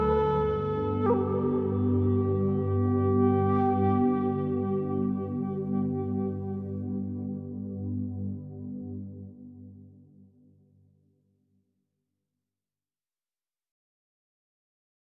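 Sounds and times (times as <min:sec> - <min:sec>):
healing music for cats: 0:00.0 - 0:11.5.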